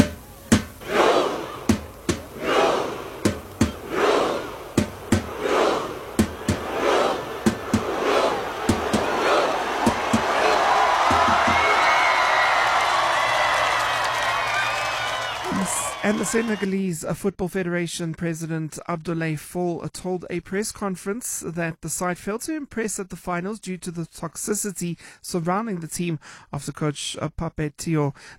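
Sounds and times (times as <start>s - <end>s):
fans chanting at hero's welcome: 0.0s - 13.3s
fans clapping in rhythm: 0.0s - 16.7s
speech: 16.2s - 28.3s.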